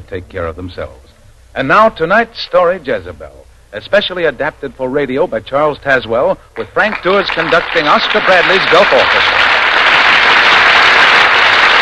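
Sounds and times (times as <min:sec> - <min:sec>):
speech: 0:00.1 - 0:09.5
studio audience applause greeting radio drama stars: 0:06.6 - 0:11.8.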